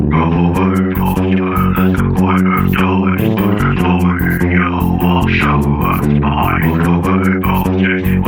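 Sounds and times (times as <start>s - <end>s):
extreme metal cover: 0.1s - 8.2s.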